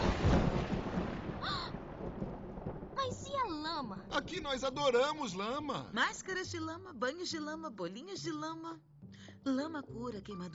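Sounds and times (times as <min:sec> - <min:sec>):
dense rain: 0:00.0 - 0:06.0
rolling thunder: 0:00.0 - 0:06.0
speech: 0:03.8 - 0:10.5.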